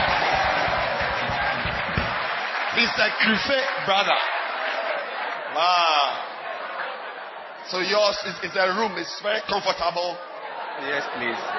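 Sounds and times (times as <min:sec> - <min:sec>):
audience clapping hands: 0:00.0 - 0:07.1
speech: 0:02.8 - 0:04.3, 0:05.6 - 0:06.3, 0:07.7 - 0:11.5.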